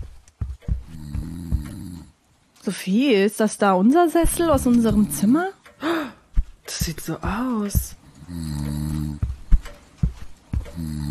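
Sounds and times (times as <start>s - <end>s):
snoring: 0.8s - 2.1s, 8.2s - 9.3s, 10.6s - 11.0s
speech: 2.6s - 6.2s, 6.9s - 8.8s.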